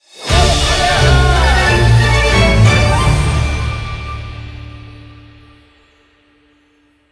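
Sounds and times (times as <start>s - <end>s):
large win jingle: 0.3s - 5.3s.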